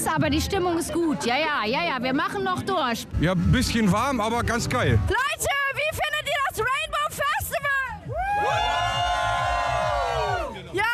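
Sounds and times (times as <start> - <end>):
speech: 0.2 - 5.6
crowd cheering and shouting: 4.9 - 10.8.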